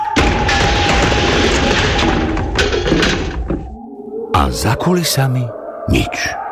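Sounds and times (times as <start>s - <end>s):
whole kingdom collapsing with a crash: 0.2s - 3.8s
speech: 4.4s - 6.4s.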